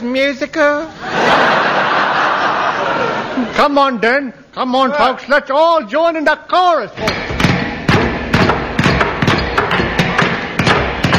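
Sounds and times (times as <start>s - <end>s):
speech: 0.0s - 2.0s, 2.9s - 7.3s
laughter: 0.9s - 3.6s
hammering nails: 7.0s - 11.1s.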